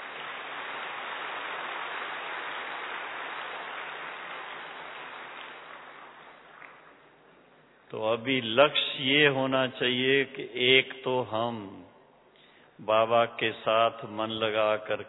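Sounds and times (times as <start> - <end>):
audience clapping: 0.0 - 7.0
speech: 7.9 - 11.9, 12.8 - 15.0.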